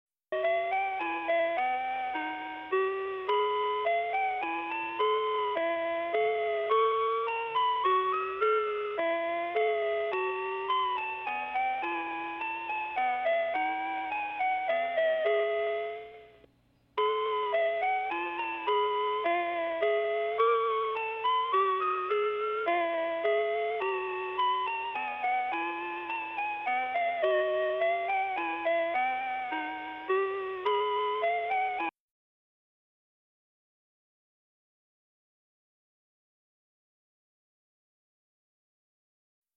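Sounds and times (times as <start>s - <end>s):
minuet: 0.3s - 31.9s.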